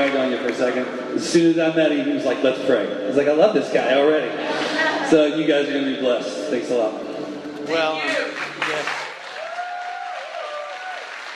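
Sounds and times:
speech: 0.4 - 7.1, 7.7 - 8.8
audience applause: 8.1 - 11.3.

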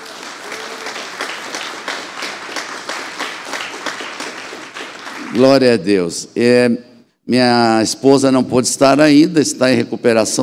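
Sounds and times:
audience applauding: 0.0 - 5.6
speech: 5.3 - 10.4.

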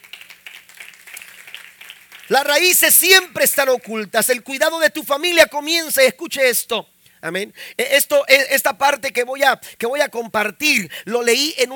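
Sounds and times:
audience applauding: 0.0 - 2.5
speech: 2.3 - 11.7.

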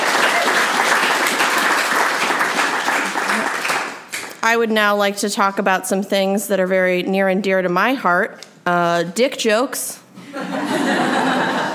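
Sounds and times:
audience round of applause: 0.0 - 4.4
speech: 4.4 - 11.4
laughter: 10.2 - 11.7.

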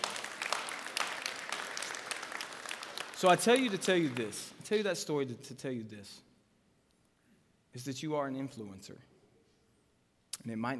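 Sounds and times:
crowd applauding: 0.0 - 5.0
speech: 3.2 - 6.3, 7.7 - 9.1, 10.4 - 10.7.

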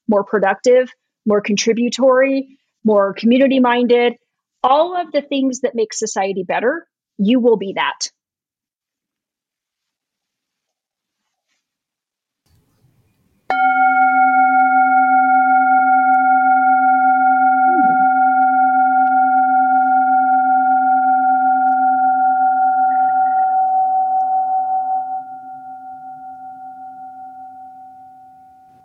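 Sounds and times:
speech: 0.1 - 8.2
Zen gong being rung: 13.5 - 28.8.

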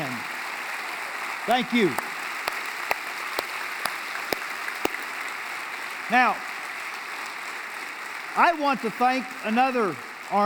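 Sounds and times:
audience applauding: 0.8 - 8.4
speech: 1.5 - 2.0, 6.1 - 6.5, 8.4 - 10.4.

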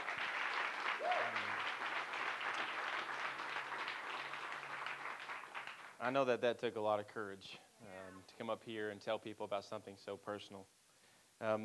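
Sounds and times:
audience round of applause: 0.0 - 6.0
speech: 6.0 - 10.8, 11.4 - 11.6.

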